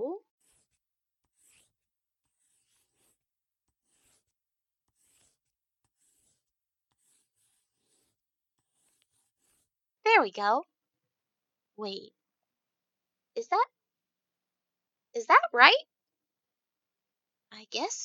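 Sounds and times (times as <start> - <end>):
scratchy strokes of inscriptions drawn on a floor in a game: 0.3 - 9.8
speech: 10.2 - 10.7, 11.8 - 12.2, 13.4 - 13.7, 15.2 - 15.9, 17.6 - 18.0.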